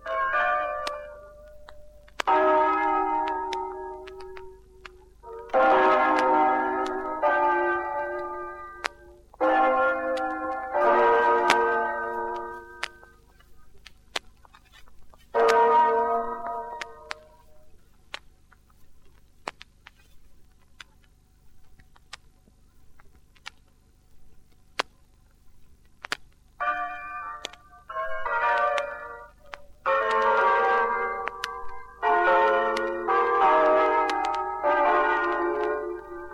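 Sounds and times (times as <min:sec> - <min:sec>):
bells ringing: 0:00.0 - 0:13.3, 0:15.3 - 0:17.7, 0:26.6 - 0:36.3.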